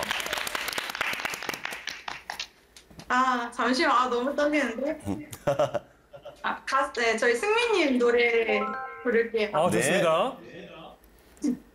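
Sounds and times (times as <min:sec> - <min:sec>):
applause from a small group: 0:00.0 - 0:02.6
speech: 0:03.1 - 0:10.5.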